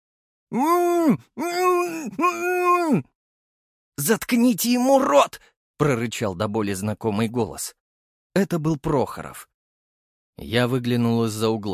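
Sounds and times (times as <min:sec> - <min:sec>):
pained muffled moaning: 0:00.5 - 0:03.1
speech: 0:00.5 - 0:03.1, 0:04.0 - 0:07.8, 0:08.4 - 0:09.5, 0:10.4 - 0:11.7.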